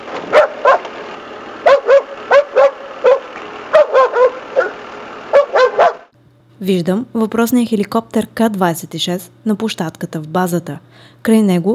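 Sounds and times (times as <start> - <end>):
guard dog Roshko barking: 0.3 - 0.9, 1.6 - 6.1
speech: 6.6 - 11.7.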